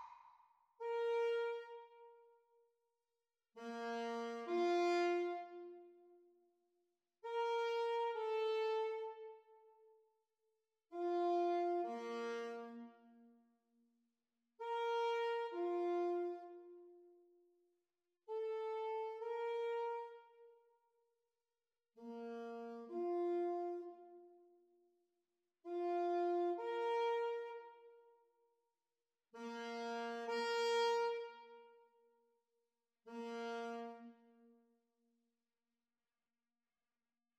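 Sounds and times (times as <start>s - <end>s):
saxophone duet playalong: 0.8s - 2.2s, 3.6s - 6.1s, 7.3s - 9.6s, 10.9s - 13.2s, 14.6s - 17.0s, 18.3s - 20.5s, 22.0s - 24.4s, 25.7s - 28.0s, 29.3s - 31.9s, 33.1s - 34.5s.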